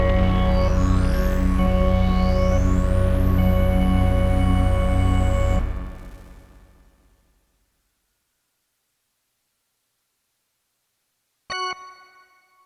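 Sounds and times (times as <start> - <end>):
electric intro: 0.0 - 6.4.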